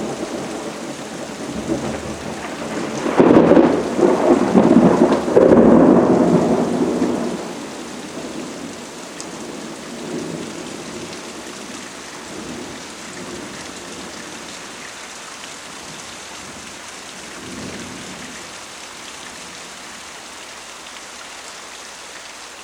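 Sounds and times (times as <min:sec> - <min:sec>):
frequent heavy thunder: 0:00.0 - 0:14.2
rain: 0:00.0 - 0:22.6.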